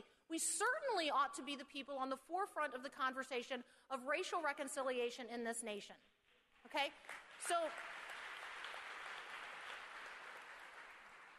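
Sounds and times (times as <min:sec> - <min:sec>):
speech: 0:00.3 - 0:08.0
audience applauding: 0:07.0 - 0:11.3.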